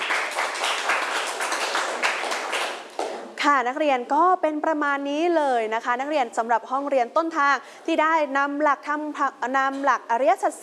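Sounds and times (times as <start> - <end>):
classroom students clapping hands: 0.0 - 3.4
speech: 3.4 - 10.6.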